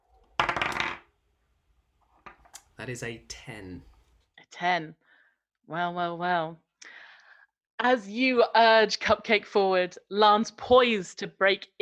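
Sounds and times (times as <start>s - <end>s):
twenty-sided die rolling on table: 0.4s - 1.1s
speech: 2.8s - 3.9s, 4.5s - 5.1s, 5.7s - 7.0s, 7.8s - 11.7s.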